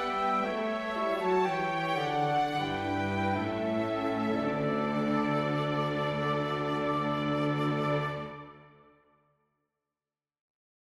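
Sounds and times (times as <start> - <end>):
wind and string ensemble: 0.0 - 8.7.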